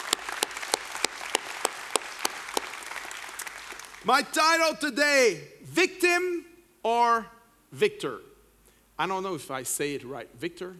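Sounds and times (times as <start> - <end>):
church audience applauding: 0.0 - 4.6
speech: 4.0 - 8.3, 9.0 - 10.7.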